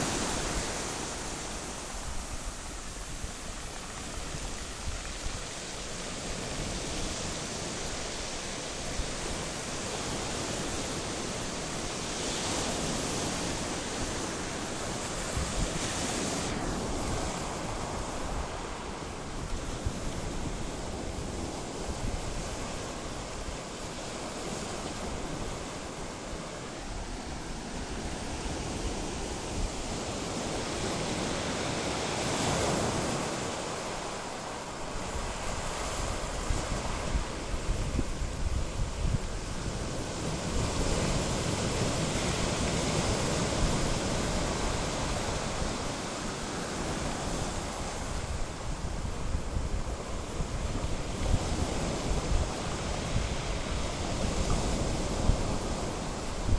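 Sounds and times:
sea: 0:00.0 - 0:56.5.

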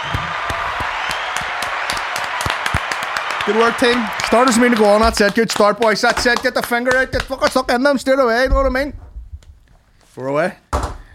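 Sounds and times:
small group applauding: 0:00.0 - 0:07.6
speech: 0:03.5 - 0:09.0, 0:10.2 - 0:10.6.

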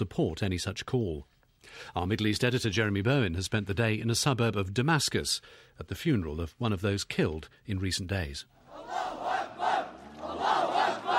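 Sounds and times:
speech: 0:00.0 - 0:09.6
crowd of men marching to a funeral in Saqqa chanting: 0:08.7 - 0:11.1.

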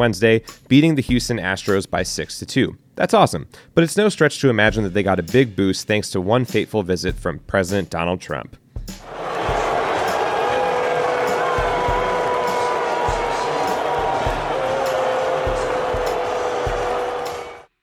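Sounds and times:
speech: 0:00.0 - 0:09.3
huge stadium crowd booing: 0:09.1 - 0:17.7.

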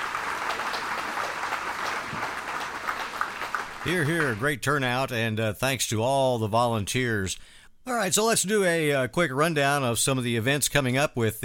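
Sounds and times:
audience round of applause: 0:00.0 - 0:04.5
speech: 0:03.8 - 0:11.4.

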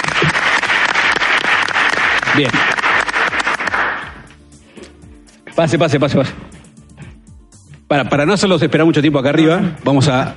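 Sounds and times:
applause: 0:00.0 - 0:04.3
speech: 0:02.4 - 0:02.7, 0:05.6 - 0:06.5, 0:07.9 - 0:10.3.

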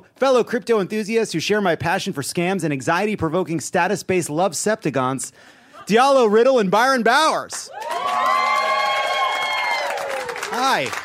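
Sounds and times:
speech: 0:00.1 - 0:08.4, 0:10.5 - 0:11.0
audience cheering: 0:07.6 - 0:11.0.

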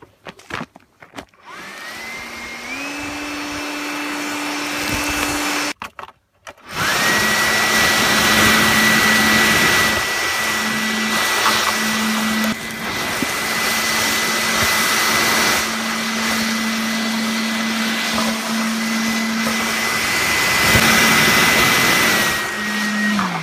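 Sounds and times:
electric garden chipper running: 0:01.4 - 0:05.8, 0:06.5 - 0:23.4.

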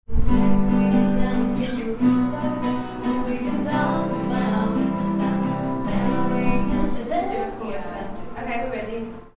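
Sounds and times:
guitar: 0:00.1 - 0:09.3.

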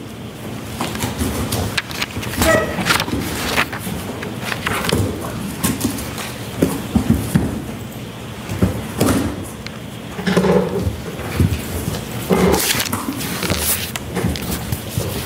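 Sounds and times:
cardboard rustling as a box is opened: 0:00.6 - 0:07.3, 0:08.7 - 0:15.2
tape tearing on a taped-up box: 0:00.8 - 0:05.3, 0:12.3 - 0:15.2.

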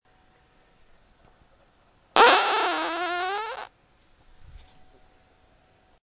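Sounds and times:
fart: 0:02.2 - 0:03.7.

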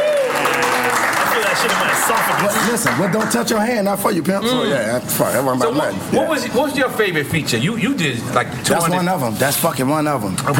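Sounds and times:
audience cheering: 0:00.0 - 0:03.2
audience applauding: 0:00.0 - 0:03.7
speech: 0:01.6 - 0:10.5.

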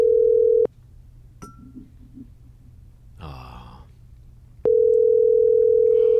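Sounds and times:
telephone ringback tone on a call: 0:00.0 - 0:00.7, 0:04.7 - 0:06.1
faint breath: 0:05.8 - 0:06.1.

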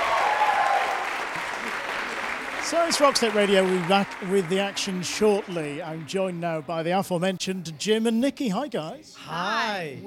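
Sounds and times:
audience applause at a swing dance event: 0:00.0 - 0:06.7
speech: 0:02.7 - 0:10.0.

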